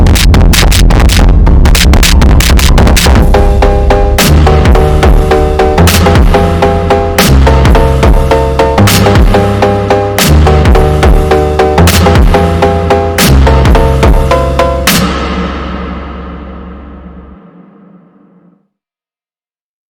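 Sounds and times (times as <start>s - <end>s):
phonk music: 0.0s - 18.4s.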